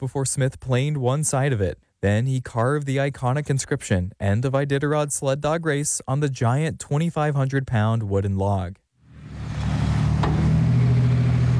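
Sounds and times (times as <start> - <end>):
speech: 0.0 - 8.8
heavy haulers dumping snow on Front Street in Nome: 9.0 - 11.5.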